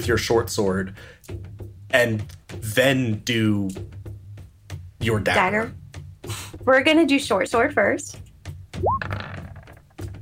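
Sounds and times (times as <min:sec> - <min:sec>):
speech: 0:00.0 - 0:04.0, 0:05.0 - 0:05.8, 0:06.6 - 0:08.2
dice rolling on a table: 0:09.0 - 0:10.2.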